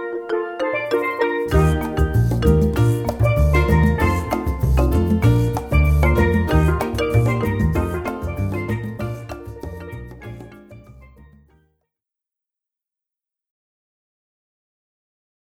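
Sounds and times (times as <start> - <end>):
island calypso band playing: 0.0 - 11.4.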